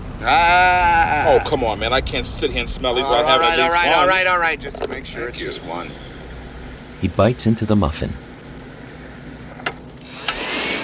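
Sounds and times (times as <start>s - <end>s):
speech: 0.2s - 6.1s, 7.0s - 8.2s
handheld vacuum cleaner sucking muffin crumbs off a shirt: 10.1s - 10.8s.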